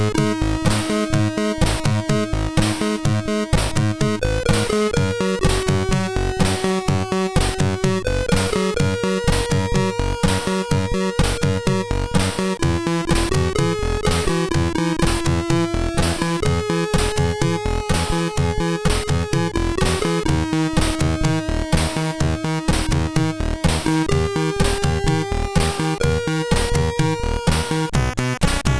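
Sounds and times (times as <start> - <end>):
MOS6581R3 SID chip music: 0.0 - 28.7.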